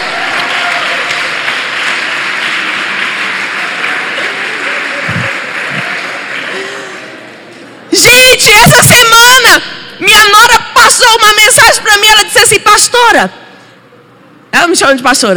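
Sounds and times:
audience applauding: 0.0s - 7.2s
speech: 8.4s - 13.4s, 14.6s - 15.3s.

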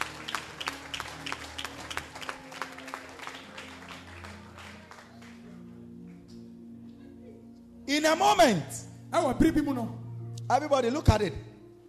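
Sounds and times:
audience clapping hands: 0.0s - 6.4s
speech: 7.9s - 11.5s.

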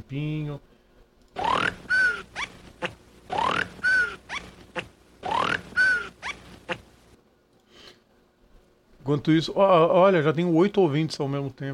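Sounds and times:
speech: 0.1s - 0.7s, 9.1s - 11.7s
hiccups: 1.4s - 6.8s.

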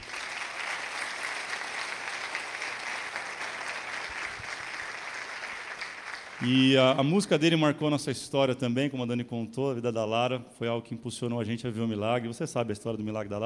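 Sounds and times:
audience applause: 0.0s - 7.0s
speech: 6.4s - 13.4s.

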